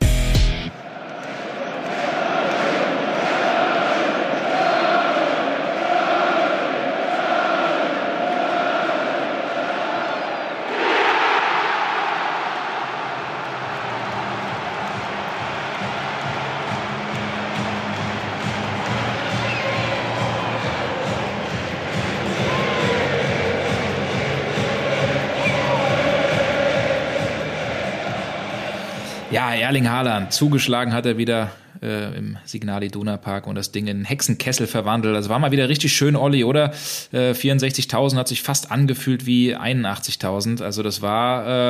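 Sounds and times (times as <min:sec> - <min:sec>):
stadium crowd cheering after penalty goal: 0:00.6 - 0:31.2
speech: 0:29.4 - 0:41.6.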